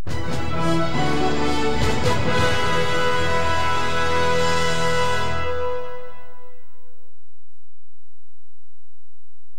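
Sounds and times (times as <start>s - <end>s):
alternative news programme closing theme music: 0.0s - 6.2s.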